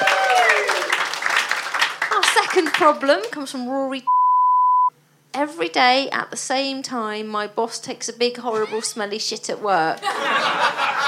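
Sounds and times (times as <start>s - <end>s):
round of applause: 0.0s - 3.1s
speech: 2.6s - 4.2s, 5.3s - 11.0s
laughter: 10.0s - 11.0s.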